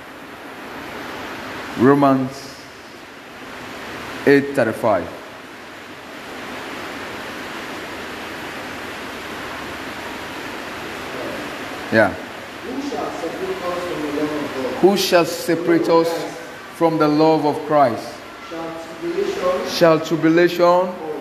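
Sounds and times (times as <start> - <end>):
rain falling outdoors: 0.0 - 21.2
speech: 1.8 - 2.4, 4.2 - 5.2, 11.9 - 18.2, 19.7 - 21.0.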